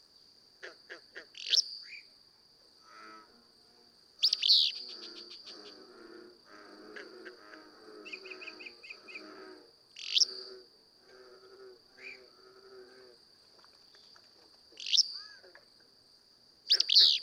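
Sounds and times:
Willow Flycatcher calling: 1.4 - 2.1, 4.2 - 5.6, 10.0 - 10.5, 14.8 - 15.4, 16.7 - 17.2.

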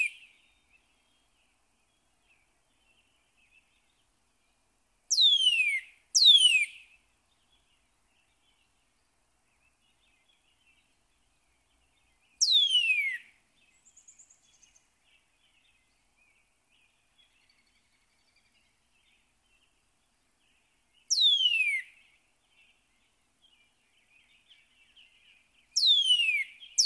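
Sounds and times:
Northern cardinal singing slurred whistles: 5.1 - 6.8, 12.4 - 13.3, 21.1 - 21.9, 25.8 - 26.8.

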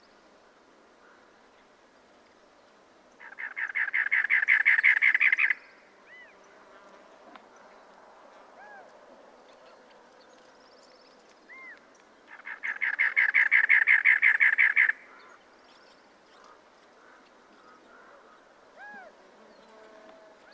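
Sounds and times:
cactus wren calling: 3.2 - 6.4, 11.5 - 18.0.

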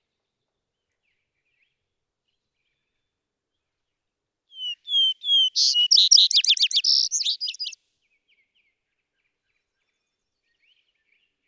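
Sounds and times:
vesper sparrow singing: 4.6 - 7.8.

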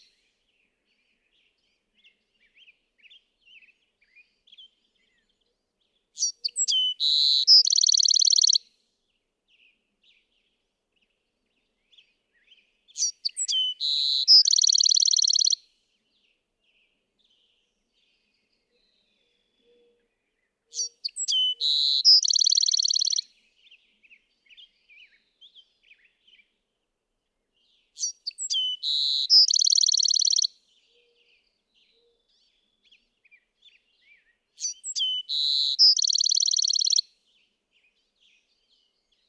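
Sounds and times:
Bewick's wren song: 6.2 - 8.6, 13.0 - 15.6, 20.7 - 23.3, 27.9 - 31.2, 34.6 - 37.1.

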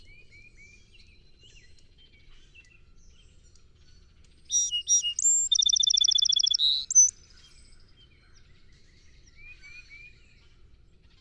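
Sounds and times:
song sparrow singing: 4.4 - 7.4.

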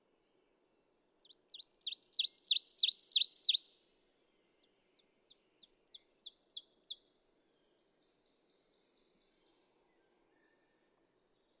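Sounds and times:
ovenbird singing: 1.2 - 3.7, 5.8 - 7.0.

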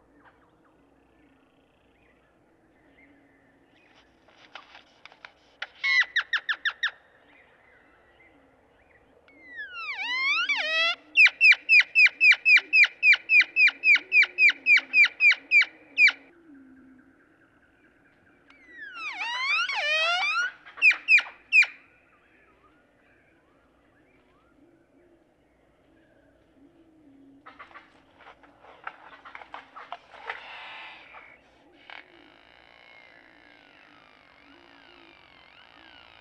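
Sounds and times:
Great-tailed Grackle calling: 4.4 - 7.0, 9.3 - 16.3, 18.5 - 22.0, 27.4 - 36.2.

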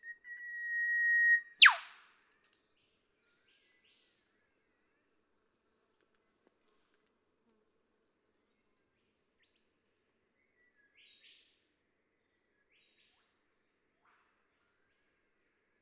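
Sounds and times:
Eastern whipbird whip-crack song: 0.0 - 2.0.

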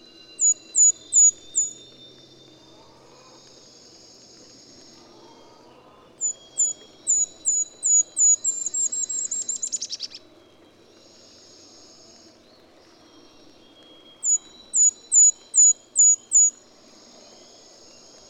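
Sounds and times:
golden-crowned kinglet song with very high thin notes: 0.0 - 5.1, 5.8 - 18.2.

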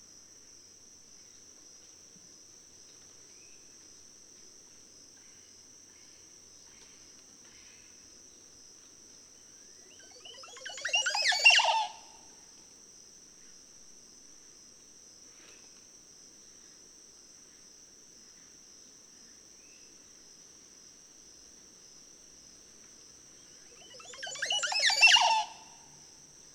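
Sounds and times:
Montezuma oropendola calling: 9.9 - 12.2, 23.6 - 25.8.

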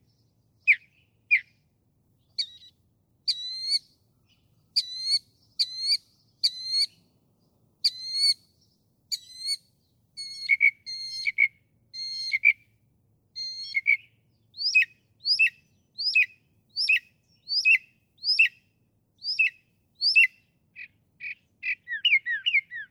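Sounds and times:
northern mockingbird singing: 2.3 - 7.1, 7.8 - 8.4, 10.2 - 12.6, 13.4 - 18.6, 19.2 - 22.8.

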